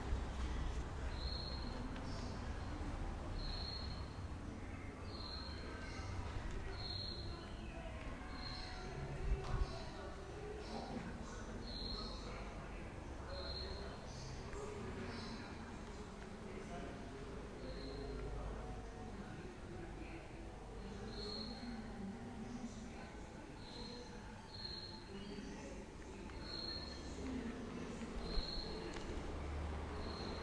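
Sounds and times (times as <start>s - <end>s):
restored courtyard in Cádiz: 0.0s - 30.4s.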